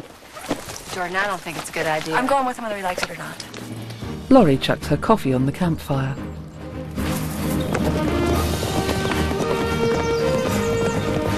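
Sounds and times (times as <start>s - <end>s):
horses galloping through a sunny clearing: 0.0s - 4.4s, 6.8s - 11.3s
speech: 1.0s - 6.3s.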